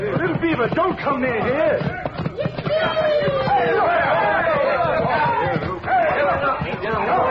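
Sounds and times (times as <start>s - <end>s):
speech: 0.5s - 3.0s
crowd commotion as horses knock people down: 1.7s - 7.2s.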